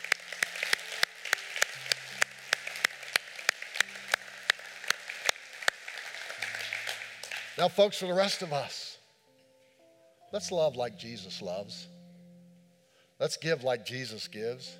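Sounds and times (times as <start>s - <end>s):
audience applause: 0.0s - 7.6s
speech: 7.6s - 8.8s, 10.3s - 11.9s, 13.2s - 14.7s.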